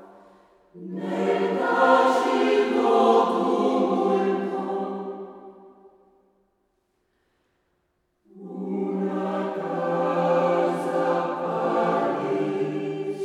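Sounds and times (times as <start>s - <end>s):
mixed choir singing: 0.7s - 5.7s, 8.3s - 13.2s.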